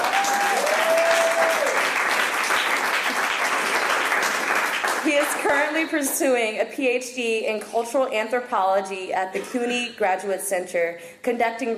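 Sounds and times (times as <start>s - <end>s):
audience applause: 0.0s - 5.8s
speech: 5.4s - 11.7s.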